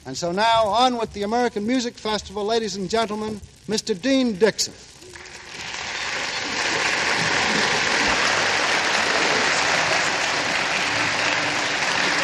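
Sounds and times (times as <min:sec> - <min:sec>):
speech: 0:00.0 - 0:04.9
concert audience applause greeting the conductor of a youth orchestra: 0:05.1 - 0:12.2.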